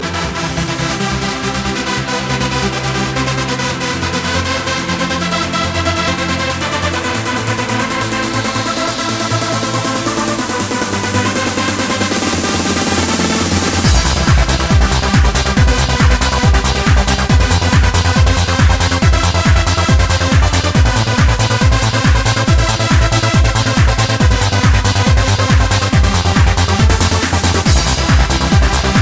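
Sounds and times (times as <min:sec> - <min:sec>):
trance music: 0:00.0 - 0:29.0.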